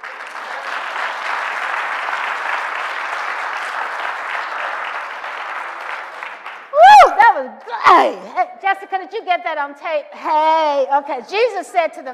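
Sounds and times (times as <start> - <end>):
audience hand clapping: 0.0 - 7.2
speech: 7.4 - 12.1.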